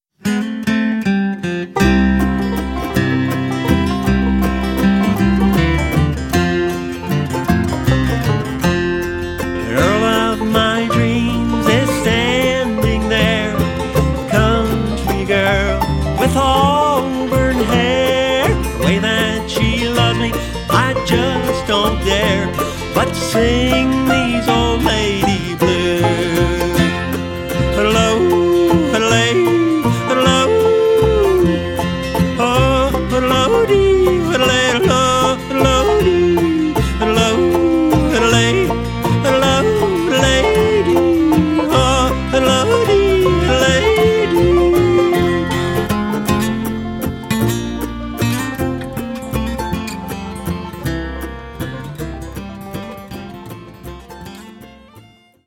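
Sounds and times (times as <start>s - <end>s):
blues music: 0.1s - 55.4s.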